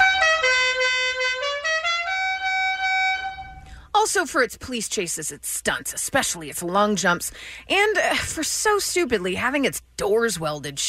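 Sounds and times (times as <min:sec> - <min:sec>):
1969 Dodge Charger signature car horn: 0:00.0 - 0:03.6
speech: 0:04.1 - 0:10.8.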